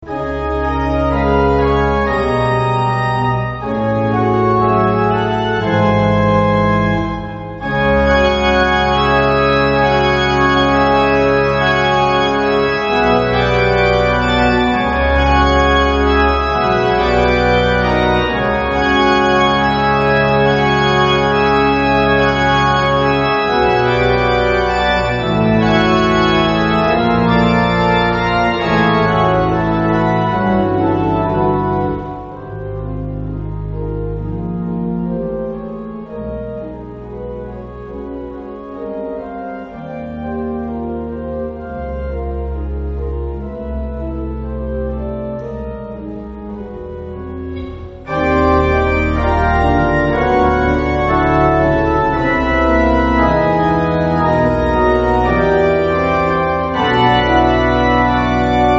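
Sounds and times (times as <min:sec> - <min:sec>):
organ playing a hymn: 0:00.0 - 0:58.7.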